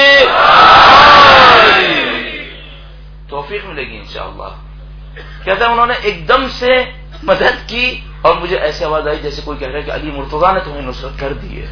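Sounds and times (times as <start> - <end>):
crowd shouting a religious call and response in unison: 0.0 - 2.8
speech: 5.4 - 11.7.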